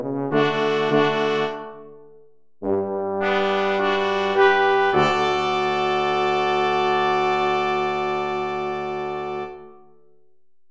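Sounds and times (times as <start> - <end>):
brass quartet playing: 0.0 - 2.0, 2.6 - 9.8.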